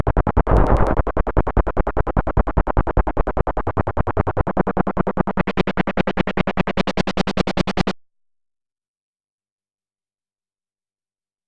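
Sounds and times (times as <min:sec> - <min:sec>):
arpeggiated bass: 0:00.0 - 0:07.9.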